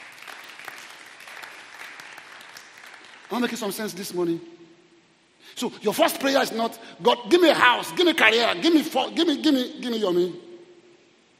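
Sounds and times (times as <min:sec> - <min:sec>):
audience clapping: 0:00.0 - 0:03.6
speech: 0:03.3 - 0:04.6, 0:05.6 - 0:10.5.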